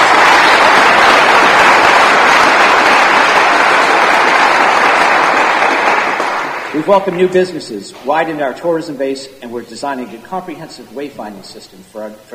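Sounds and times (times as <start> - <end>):
audience applause for the people involved in a new library: 0.0 - 8.2
speech: 6.9 - 12.3.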